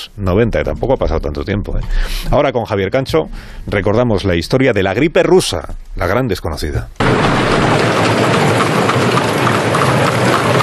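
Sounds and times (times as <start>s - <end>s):
speech: 0.1s - 8.4s
horse-drawn carriages on the Paseo de las Delicias de la Princesa: 7.0s - 10.6s.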